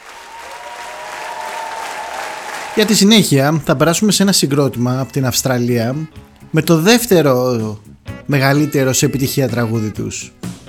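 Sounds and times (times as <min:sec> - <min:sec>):
audience applause: 0:00.0 - 0:03.4
speech: 0:02.8 - 0:10.6.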